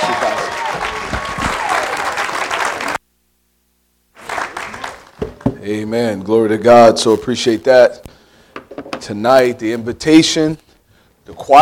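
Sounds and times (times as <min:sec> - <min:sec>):
audience applause: 0:00.0 - 0:03.0, 0:04.2 - 0:05.5
speech: 0:05.7 - 0:08.1, 0:09.1 - 0:10.6, 0:11.3 - 0:11.6.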